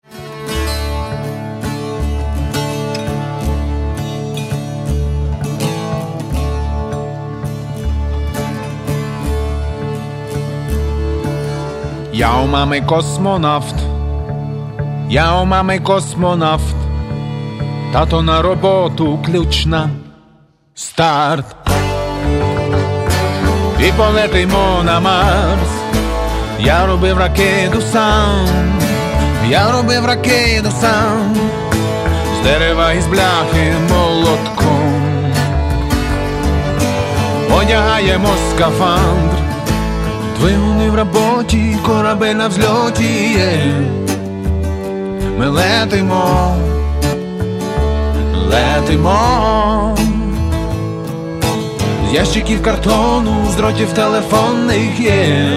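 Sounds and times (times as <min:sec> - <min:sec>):
Lemko bluegrass band playing: 0:00.0 - 0:20.2, 0:21.6 - 0:55.5.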